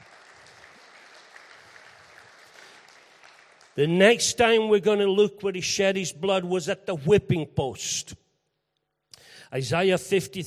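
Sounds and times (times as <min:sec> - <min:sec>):
crowd clapping: 0:00.0 - 0:04.4
speech: 0:03.8 - 0:08.2, 0:09.5 - 0:10.4.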